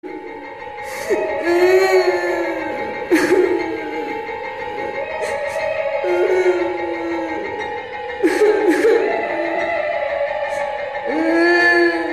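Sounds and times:
witch cry: 0:00.1 - 0:12.1.

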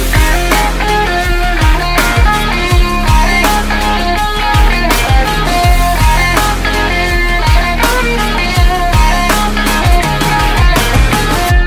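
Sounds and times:
guitar: 0:00.0 - 0:11.6.

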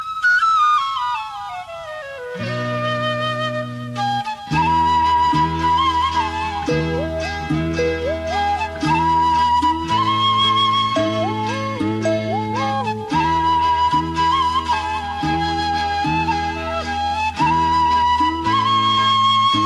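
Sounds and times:
flute: 0:00.0 - 0:19.6.

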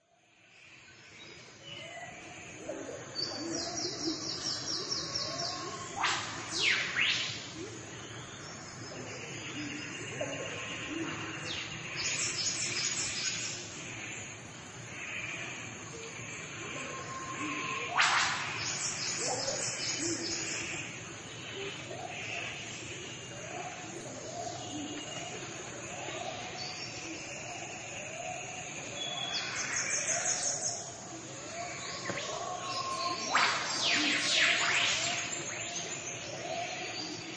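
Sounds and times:
Australian rainforest nature sounds: 0:00.0 - 0:37.3.

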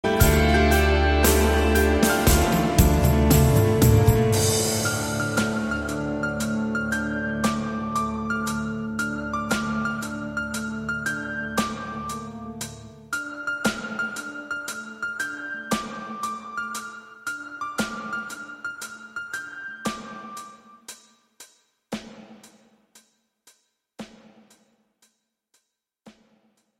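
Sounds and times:
piano: 0:00.0 - 0:20.9.

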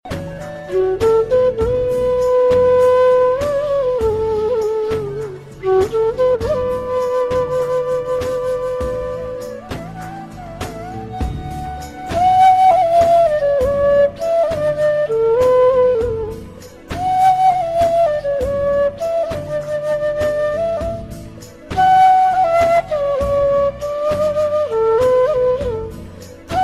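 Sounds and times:
flute: 0:00.0 - 0:26.6.

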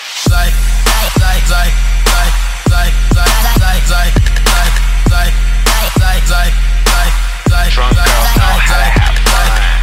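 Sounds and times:
trap beat: 0:00.1 - 0:09.8.

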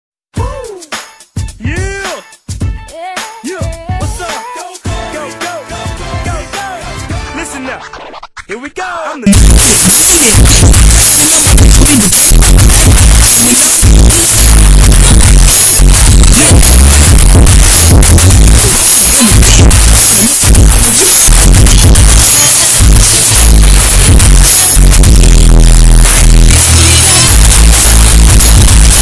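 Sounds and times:
boosted bass: 0:09.3 - 0:29.0.

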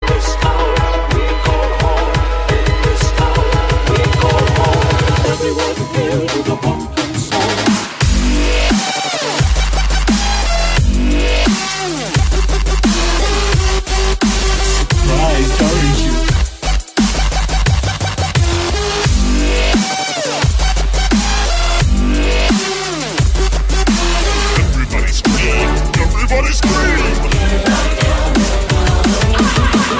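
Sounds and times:
Halloween dubstep music: 0:00.1 - 0:29.9
laughter: 0:24.6 - 0:29.9.

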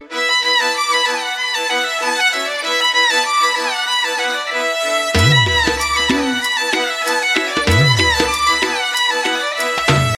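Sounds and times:
violin: 0:00.0 - 0:10.1.

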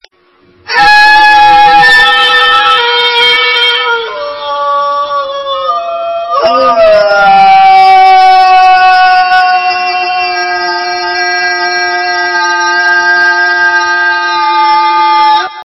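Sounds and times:
scream tone: 0:00.6 - 0:15.6.

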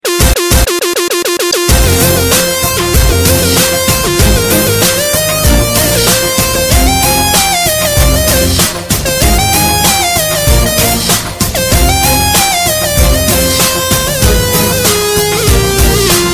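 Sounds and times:
intro music: 0:00.0 - 0:16.3.

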